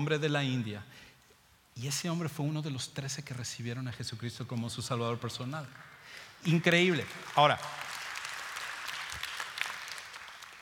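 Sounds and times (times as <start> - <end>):
speech: 0.0 - 1.1, 1.8 - 7.9
audience applause: 5.8 - 10.6.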